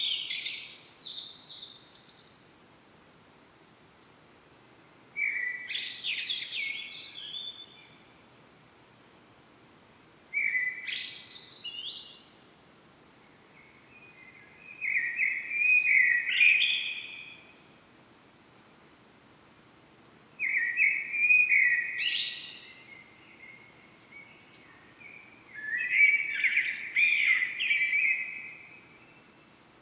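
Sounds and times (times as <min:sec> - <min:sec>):
common blackbird song: 0:00.0 - 0:02.6, 0:05.2 - 0:08.2, 0:10.3 - 0:12.6, 0:13.2 - 0:17.8, 0:20.4 - 0:29.7.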